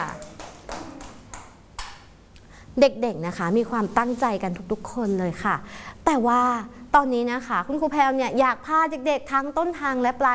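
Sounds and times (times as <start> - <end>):
children clapping to encourage a classmate: 0.0 - 2.1
speech: 2.8 - 10.3.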